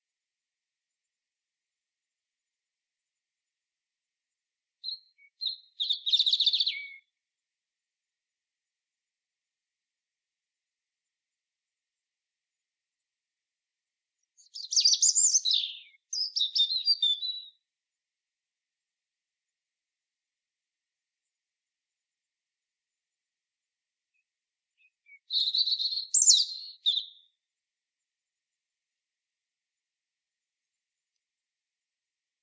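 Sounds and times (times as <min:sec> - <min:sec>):
European robin singing: 0:04.8 - 0:07.1, 0:14.3 - 0:17.6, 0:24.1 - 0:27.4.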